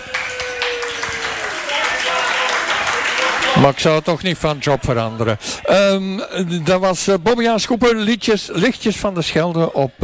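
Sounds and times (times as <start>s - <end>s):
audience applause: 0.0s - 4.7s
speech: 3.6s - 10.0s.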